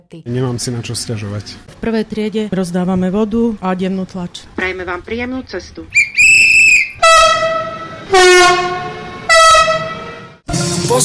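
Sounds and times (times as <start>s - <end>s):
speech: 0.1s - 6.1s, 8.1s - 8.8s
moving train rumbling: 0.5s - 10.5s
train horn blasts: 6.5s - 10.4s.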